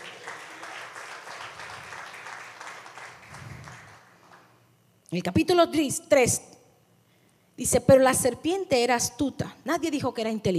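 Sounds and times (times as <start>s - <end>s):
audience applause: 0.0s - 4.4s
speech: 5.1s - 6.5s, 7.6s - 10.5s.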